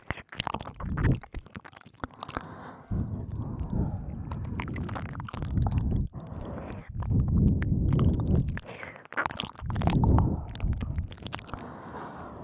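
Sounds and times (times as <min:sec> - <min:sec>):
licking both ears: 0:00.0 - 0:12.4
breathing into both ears: 0:02.2 - 0:05.0, 0:05.6 - 0:09.1, 0:10.0 - 0:12.4.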